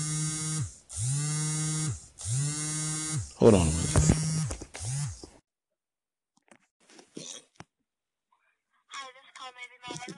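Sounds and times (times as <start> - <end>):
mobile phone buzzing on vibrate with incoming call: 0.0 - 5.3
speech: 3.4 - 4.2.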